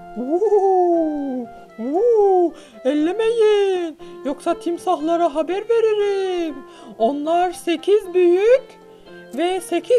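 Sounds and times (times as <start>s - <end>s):
owl hooting: 0.0s - 3.0s
speech: 0.2s - 0.7s, 4.2s - 9.9s.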